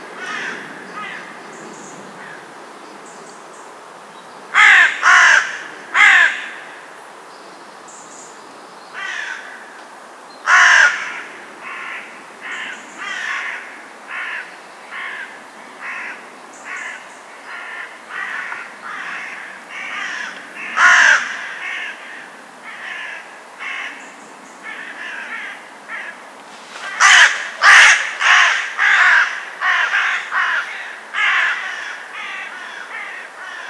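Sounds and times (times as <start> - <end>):
Corvus corone calling: 0.2 - 1.4, 4.5 - 6.8, 9.0 - 9.8, 10.4 - 26.2, 26.8 - 33.6.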